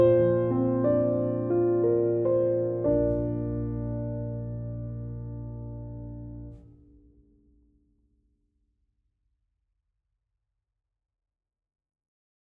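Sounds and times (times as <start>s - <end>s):
ballad music: 0.0s - 6.5s.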